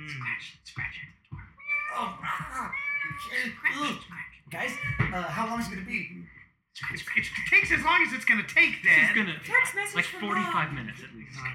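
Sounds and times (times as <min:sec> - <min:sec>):
speech: 0:00.3 - 0:01.2, 0:02.0 - 0:11.5
cat meowing: 0:01.6 - 0:03.6, 0:04.6 - 0:05.8
laughter: 0:06.9 - 0:11.5.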